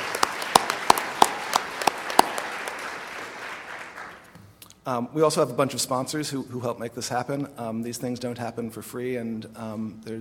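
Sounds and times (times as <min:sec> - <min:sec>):
scattered audience hand claps: 0:00.0 - 0:04.3
speech: 0:04.8 - 0:10.2.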